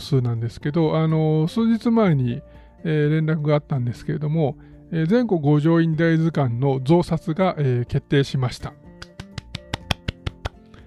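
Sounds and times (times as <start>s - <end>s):
speech: 0.0s - 8.8s
hand clapping as sound effect: 8.8s - 10.8s.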